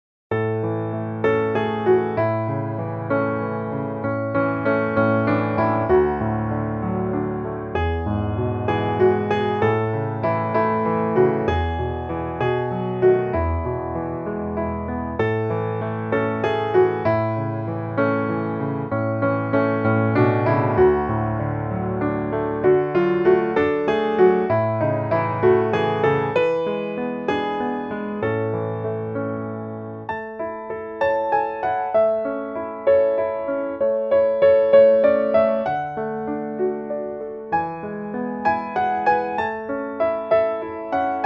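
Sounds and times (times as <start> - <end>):
piano: 0.3 - 41.2.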